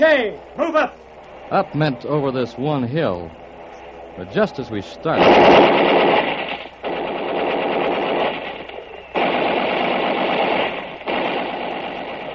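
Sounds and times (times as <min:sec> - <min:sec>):
speech: 0:00.0 - 0:03.4, 0:04.2 - 0:06.1
machine gun automatic gunfire: 0:05.2 - 0:12.3.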